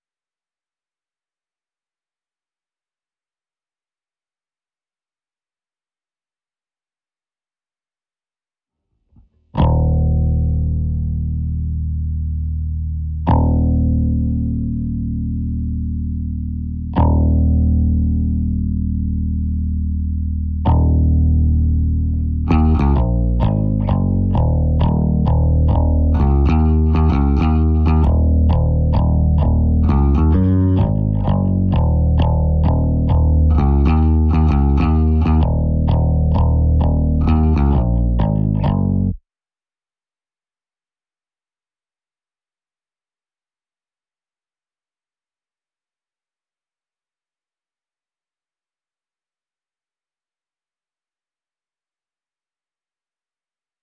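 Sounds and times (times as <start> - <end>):
bass: 9.2 - 39.2.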